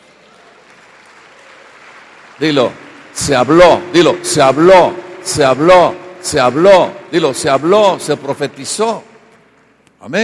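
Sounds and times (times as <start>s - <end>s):
audience applause: 0.0s - 5.4s
speech: 2.4s - 9.1s, 10.0s - 10.2s.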